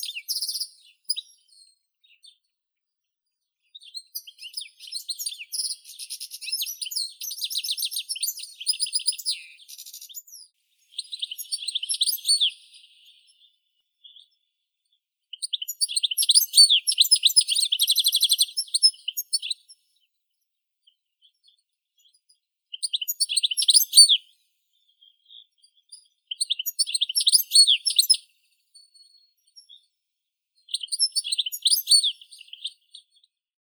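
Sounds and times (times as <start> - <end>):
goldfinch Carduelis carduelis singing: 3.9 - 13.3, 15.4 - 19.6, 22.8 - 24.2, 26.3 - 28.2, 30.7 - 32.8.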